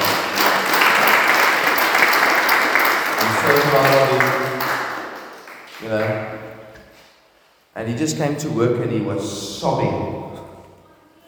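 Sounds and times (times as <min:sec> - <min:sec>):
people clapping: 0:00.0 - 0:06.9
speech: 0:03.6 - 0:04.4, 0:05.8 - 0:06.5, 0:07.8 - 0:10.2.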